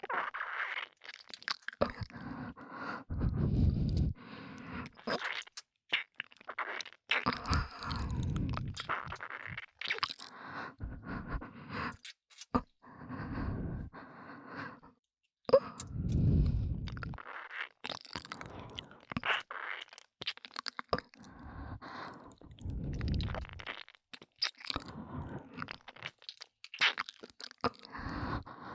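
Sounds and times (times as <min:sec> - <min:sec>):
relaxed breathing: 0:01.9 - 0:05.0, 0:07.4 - 0:08.8, 0:10.2 - 0:12.1, 0:12.8 - 0:17.2, 0:18.4 - 0:19.0, 0:21.2 - 0:23.6, 0:24.8 - 0:25.7, 0:27.8 - 0:28.7
ear licking sounds: 0:03.2 - 0:12.6, 0:15.6 - 0:28.7.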